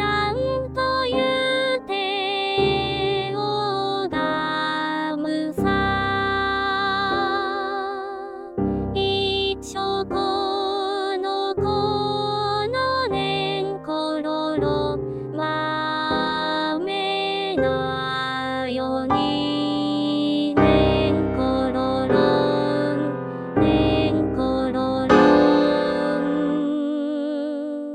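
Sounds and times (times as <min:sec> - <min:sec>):
female soprano singing: 0:00.0 - 0:27.9.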